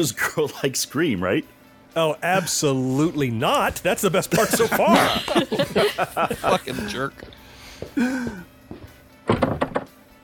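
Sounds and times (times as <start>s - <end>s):
speech: 0.0s - 8.5s
laughter: 4.1s - 7.2s, 8.0s - 8.4s
door creaking shut with a heavy thunk: 9.2s - 10.0s.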